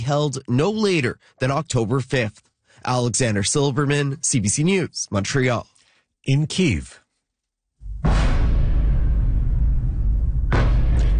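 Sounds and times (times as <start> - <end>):
speech: 0.1 - 7.0
explosions during overnight missile attack: 7.8 - 11.1.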